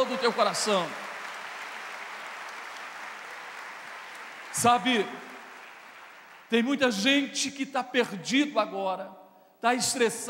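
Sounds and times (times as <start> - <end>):
large audience applauding: 0.0 - 6.6
speech: 0.2 - 1.0, 4.6 - 5.3, 6.5 - 10.2.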